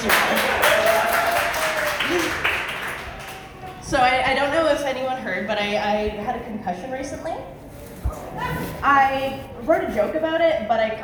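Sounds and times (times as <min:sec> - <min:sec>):
audience applause: 0:00.0 - 0:03.7
speech: 0:03.9 - 0:07.6, 0:08.4 - 0:11.0.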